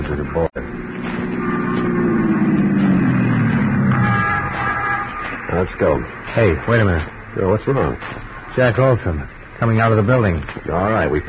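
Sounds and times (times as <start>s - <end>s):
squad car driving: 0.0s - 11.2s
speech: 0.1s - 0.8s, 5.6s - 11.2s.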